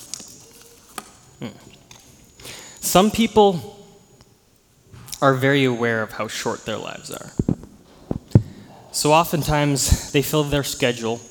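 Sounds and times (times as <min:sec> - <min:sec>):
sheet of paper rustling and crinkling: 0:00.0 - 0:01.2
speech: 0:01.4 - 0:01.8, 0:02.8 - 0:03.8, 0:05.2 - 0:07.5, 0:09.0 - 0:11.2.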